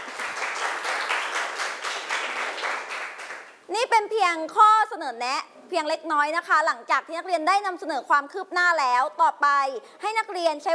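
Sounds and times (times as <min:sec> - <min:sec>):
students applauding: 0:00.0 - 0:03.6
speech: 0:03.8 - 0:10.7.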